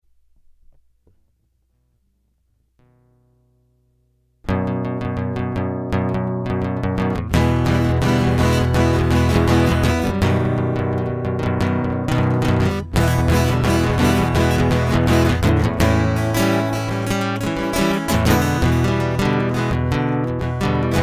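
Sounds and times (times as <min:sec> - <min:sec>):
instrumental music: 0:04.5 - 0:21.0.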